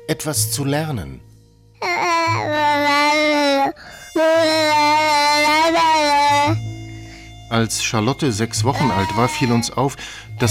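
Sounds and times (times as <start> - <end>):
speech: 0.1 - 1.3, 2.3 - 3.5, 7.5 - 10.4
toddler babbling: 1.8 - 6.6, 8.7 - 9.8.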